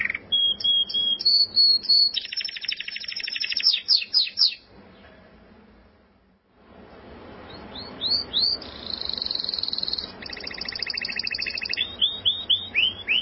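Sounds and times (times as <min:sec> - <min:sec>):
canary-type buzzy trill: 0:00.0 - 0:04.7, 0:07.4 - 0:13.1
background hiss: 0:00.0 - 0:13.1.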